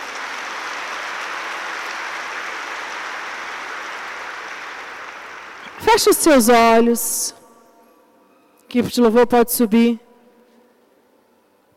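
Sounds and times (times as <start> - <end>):
loud applause from audience: 0.0 - 6.4
speech: 5.8 - 7.4, 8.7 - 10.0.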